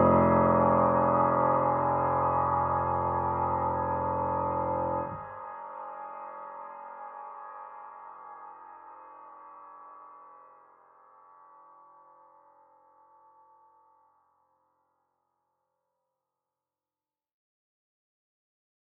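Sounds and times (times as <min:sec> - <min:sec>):
piano piece: 0:00.0 - 0:09.2.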